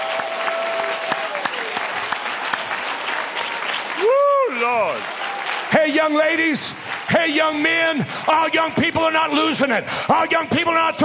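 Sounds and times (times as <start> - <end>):
audience applause: 0.0 - 8.8
speech: 4.7 - 11.0.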